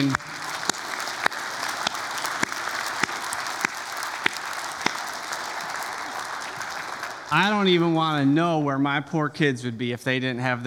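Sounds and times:
audience round of applause: 0:00.0 - 0:08.3
speech: 0:07.3 - 0:10.6.

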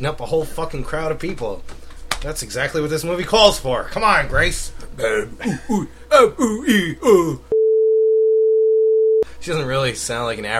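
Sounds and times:
speech: 0:00.0 - 0:07.5, 0:09.4 - 0:10.5
censor bleep tone: 0:07.6 - 0:09.2.

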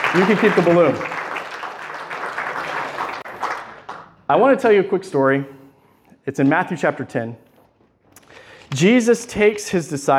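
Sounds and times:
audience applause: 0:00.0 - 0:04.2
speech: 0:00.1 - 0:01.1, 0:04.3 - 0:05.6, 0:06.3 - 0:07.5, 0:08.7 - 0:10.1.

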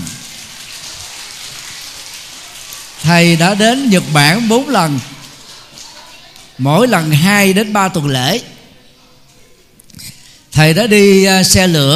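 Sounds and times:
crowd applause: 0:00.0 - 0:07.8
speech: 0:03.0 - 0:05.1, 0:06.6 - 0:08.5, 0:10.0 - 0:11.9.

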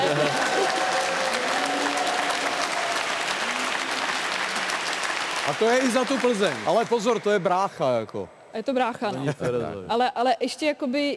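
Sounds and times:
audience applause: 0:00.0 - 0:07.8
speech: 0:05.5 - 0:11.1.

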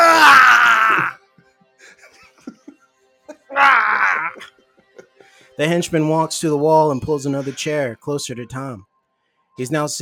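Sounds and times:
man roaring in pain: 0:00.0 - 0:01.2, 0:03.5 - 0:04.5
speech: 0:05.6 - 0:08.9, 0:09.6 - 0:10.0.

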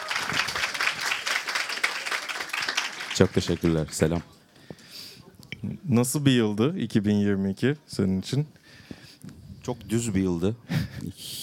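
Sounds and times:
audience applause: 0:00.0 - 0:04.3
speech: 0:03.2 - 0:04.4, 0:05.9 - 0:09.0, 0:09.6 - 0:11.4.

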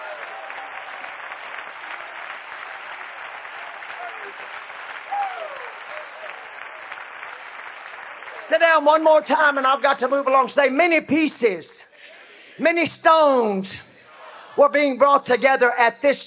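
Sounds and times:
audience clapping hands: 0:00.0 - 0:09.6
speech: 0:04.2 - 0:04.8, 0:08.5 - 0:11.9, 0:12.6 - 0:13.9, 0:14.6 - 0:16.2.

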